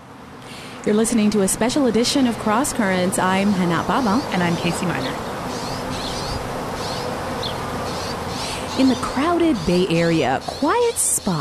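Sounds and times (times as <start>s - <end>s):
hum: 0.0s - 11.3s
honeybees buzzing: 0.1s - 11.3s
speech: 0.8s - 5.3s, 8.8s - 11.3s
high chirps: 3.6s - 11.3s.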